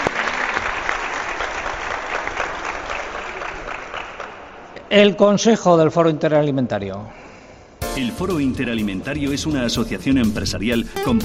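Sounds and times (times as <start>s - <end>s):
audience applause: 0.0s - 4.7s
speech: 4.9s - 7.2s, 8.0s - 11.2s.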